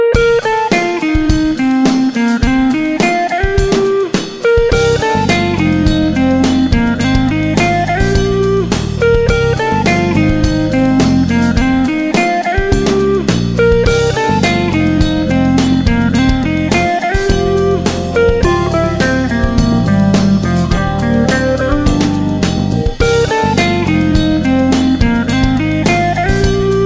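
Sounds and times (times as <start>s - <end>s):
smooth jazz: 0.2s - 26.8s.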